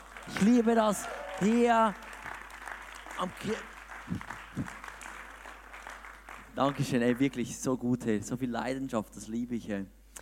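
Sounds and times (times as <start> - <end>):
audience applause: 0.0 - 7.3
speech: 0.3 - 2.0, 3.2 - 4.8, 6.6 - 10.0.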